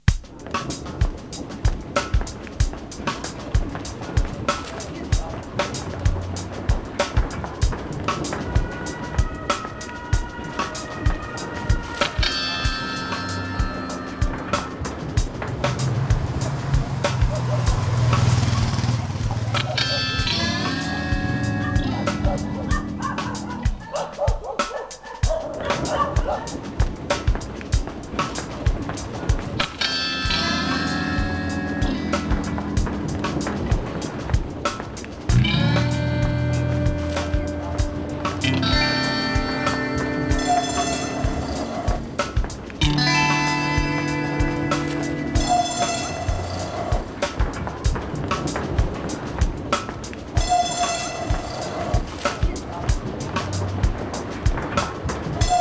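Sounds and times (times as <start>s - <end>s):
ambient music: 0.0s - 55.5s.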